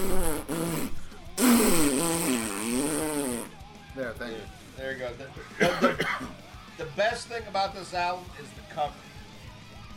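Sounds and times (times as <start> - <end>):
voice imitating a fart into the microphone: 0.0 - 3.6
speech: 4.2 - 6.3, 6.9 - 9.1.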